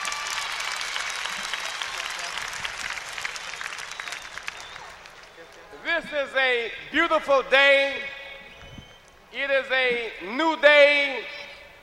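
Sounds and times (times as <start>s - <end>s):
audience applause: 0.0s - 5.8s
speech: 6.0s - 8.1s, 9.3s - 11.4s.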